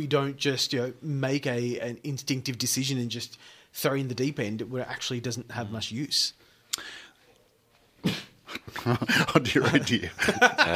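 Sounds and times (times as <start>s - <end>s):
speech: 0.0s - 7.0s, 8.0s - 10.7s
small cough: 8.0s - 9.3s
laughter: 8.5s - 10.7s.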